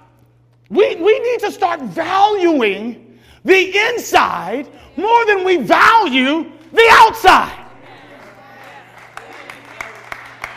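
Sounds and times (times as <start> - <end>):
low hum: 0.0 - 10.5
speech: 0.7 - 7.6
scattered hand claps: 8.0 - 10.5.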